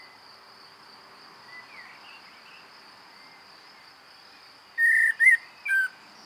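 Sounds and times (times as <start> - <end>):
common blackbird whistling: 4.8 - 5.9.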